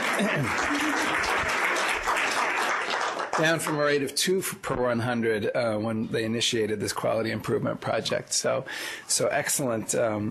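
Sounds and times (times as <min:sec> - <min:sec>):
audience applause: 0:00.0 - 0:04.0
speech: 0:00.2 - 0:01.3, 0:03.4 - 0:10.2.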